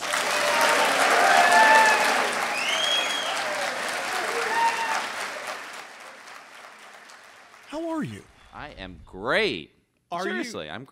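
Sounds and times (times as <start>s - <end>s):
live audience applause welcoming a guest at a book event in Manchester Center, Vermont: 0.0s - 8.1s
speech: 8.7s - 10.8s.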